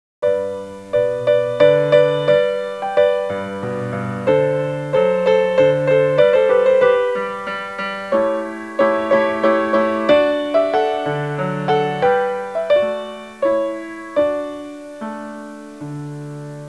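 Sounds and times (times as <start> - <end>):
classical music ringtones: 0.2 - 16.6.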